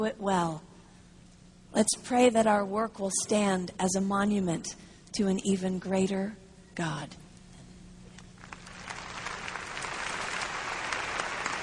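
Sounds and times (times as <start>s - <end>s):
speech: 0.0s - 0.7s, 1.7s - 7.2s
audience clapping: 8.4s - 11.6s.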